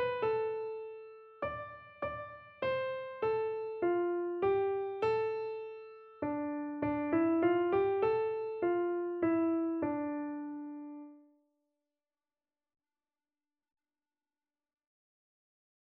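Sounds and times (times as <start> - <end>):
keyboard: 0.0 - 11.2.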